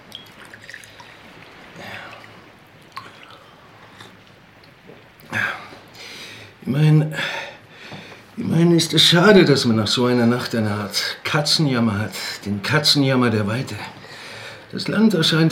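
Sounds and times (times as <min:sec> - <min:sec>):
rum pouring into a glass: 0:00.1 - 0:02.3
speech: 0:06.7 - 0:07.3, 0:08.5 - 0:14.0, 0:14.8 - 0:15.5.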